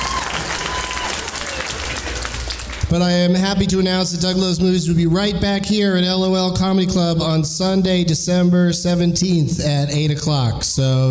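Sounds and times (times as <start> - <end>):
audience applause at a comedy club: 0.0 - 2.9
speech: 2.9 - 11.1.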